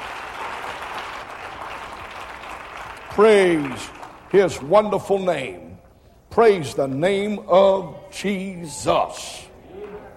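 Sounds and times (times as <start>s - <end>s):
audience clapping applause: 0.0s - 4.7s
speech: 3.2s - 5.7s, 6.4s - 9.5s.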